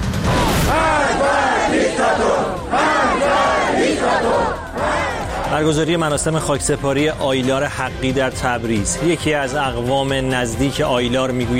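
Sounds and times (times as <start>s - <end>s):
large crowd chanting at anti-government protest: 0.2s - 5.8s
speech: 5.6s - 11.5s.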